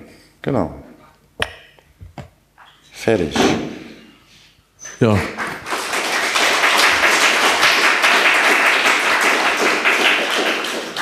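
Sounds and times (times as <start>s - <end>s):
speech: 0.4s - 0.8s, 3.0s - 3.7s, 5.0s - 5.4s
audience applause: 5.2s - 11.0s.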